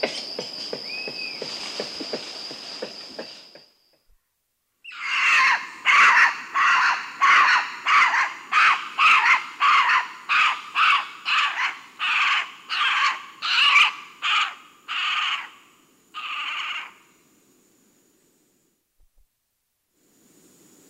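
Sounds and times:
Central American spider monkey giving harsh rasping calls: 4.9s - 15.5s.

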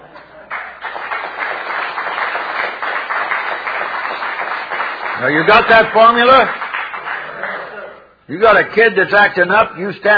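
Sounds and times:
congregation applauding: 0.2s - 7.6s
speech: 5.2s - 6.6s, 8.3s - 10.1s.

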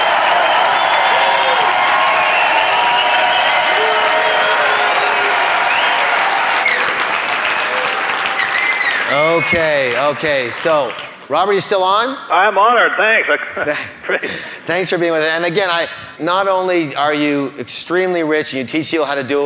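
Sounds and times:
faint cheers and whistles: 0.0s - 7.0s, 7.6s - 9.8s
large audience applauding: 0.0s - 11.3s
speech: 9.4s - 19.4s.

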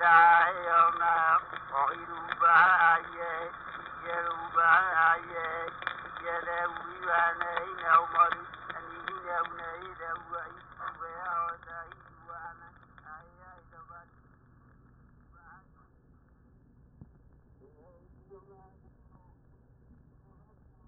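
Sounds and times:
Hawaiian name chant for the goddess: 0.0s - 13.4s.

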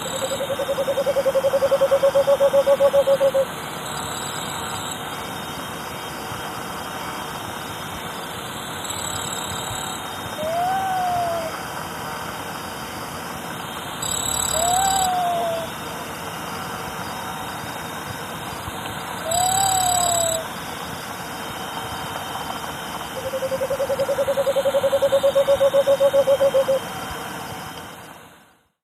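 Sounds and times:
Cinnamon Screech-Owl calling in Ecuador: 0.0s - 4.8s, 8.8s - 11.6s, 14.0s - 15.9s, 19.2s - 20.6s, 23.2s - 26.9s.

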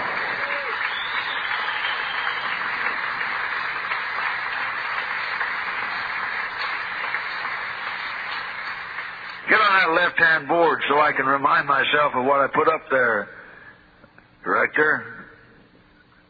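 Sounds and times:
audience applause: 0.0s - 10.3s
speech: 9.8s - 13.4s, 14.4s - 15.2s.

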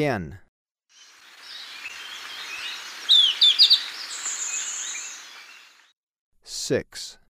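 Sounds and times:
other faint birds: 1.0s - 5.9s
Golden-faced Tyrannulet calling a downslurred whistle and quick notes: 1.4s - 5.8s.

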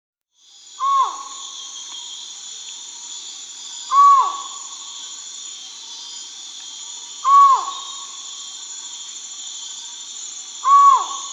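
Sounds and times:
collared forest-falcon calling in South America: 0.8s - 1.5s, 3.9s - 4.8s, 7.2s - 8.2s, 10.6s - 11.3s.

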